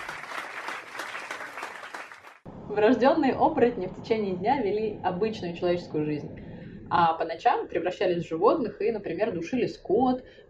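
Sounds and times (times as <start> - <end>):
applause: 0.0 - 2.5
speech: 2.7 - 10.4.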